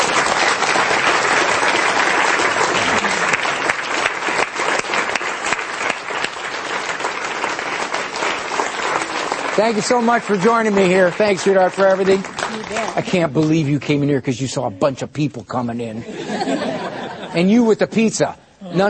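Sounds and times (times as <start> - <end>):
audience applause at a live show: 0.0 - 15.0
speech: 9.6 - 16.7, 17.3 - 18.8
laughter: 16.0 - 18.8.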